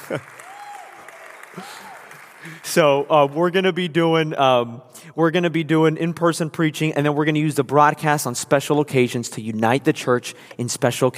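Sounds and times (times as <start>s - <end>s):
laughter: 0.0s - 0.4s
audience clapping: 0.0s - 3.5s
speech: 0.1s - 0.4s, 1.6s - 11.1s.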